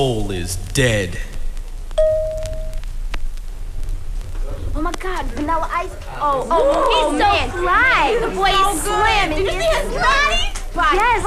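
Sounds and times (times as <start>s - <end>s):
speech: 0.0s - 1.3s, 4.8s - 11.2s
bright chime signalling to turn the page: 2.0s - 2.8s.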